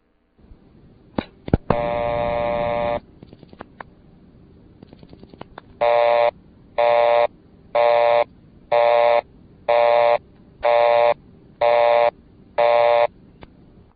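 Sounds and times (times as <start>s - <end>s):
dial tone: 1.7s - 3.0s, 5.8s - 13.1s.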